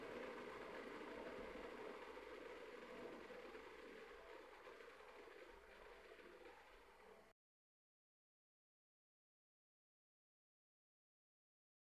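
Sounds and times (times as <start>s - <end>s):
kettle boiling: 0.0s - 7.3s.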